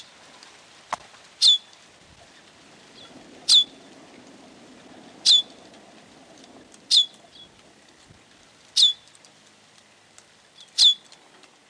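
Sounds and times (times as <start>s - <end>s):
bird giving sharp very high downslurred chirps: 1.4s - 1.7s, 2.9s - 3.8s, 5.2s - 5.6s, 6.9s - 7.6s, 8.8s - 9.1s, 10.6s - 11.1s.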